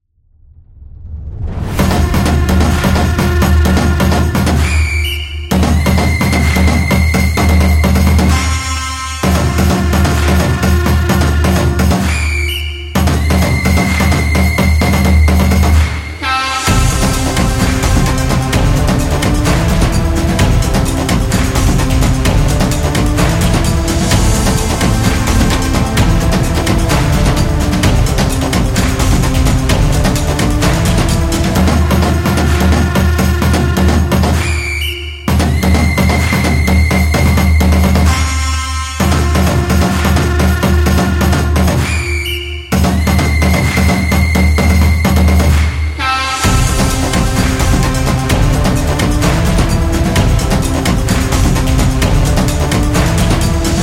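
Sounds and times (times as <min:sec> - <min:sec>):
energetic football drums: 0:01.4 - 0:53.8.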